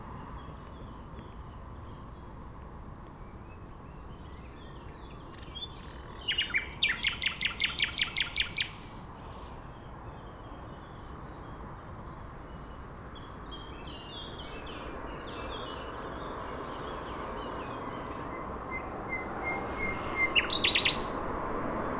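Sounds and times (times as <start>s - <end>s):
nightingale singing in a bush by Lac du Bourget, France: 6.2s - 8.9s, 13.6s - 21.9s.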